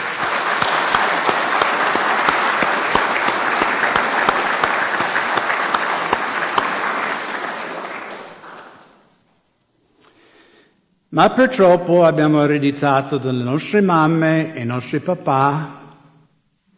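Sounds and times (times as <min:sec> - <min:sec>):
audience applause: 0:00.0 - 0:09.0
speech: 0:11.2 - 0:15.8.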